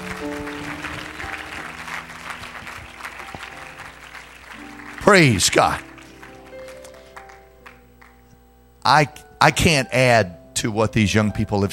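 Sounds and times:
audience clapping hands: 0:00.0 - 0:08.3
speech: 0:05.1 - 0:05.9, 0:08.9 - 0:11.7.

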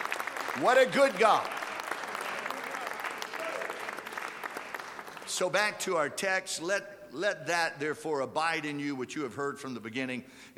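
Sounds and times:
audience clapping hands: 0:00.0 - 0:06.0
speech: 0:00.6 - 0:01.6, 0:05.4 - 0:10.5.

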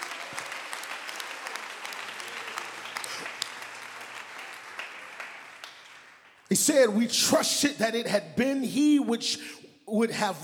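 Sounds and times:
crowd clapping: 0:00.0 - 0:06.5
speech: 0:06.5 - 0:10.4.

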